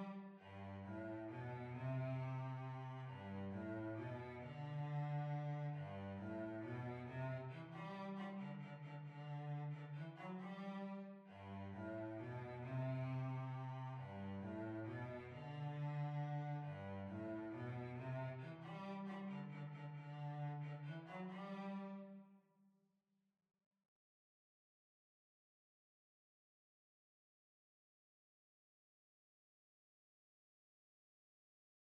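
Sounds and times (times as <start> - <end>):
violoncello: 0.0 - 22.5.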